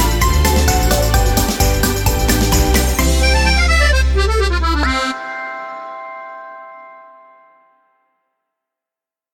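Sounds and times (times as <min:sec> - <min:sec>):
karaoke singing: 0:00.0 - 0:05.6.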